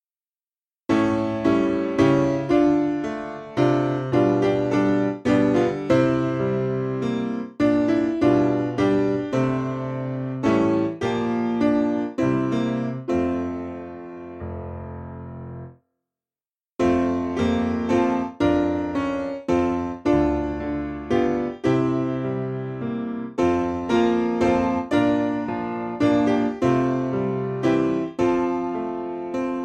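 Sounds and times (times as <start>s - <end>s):
piano: 0.9s - 15.8s, 16.8s - 29.6s.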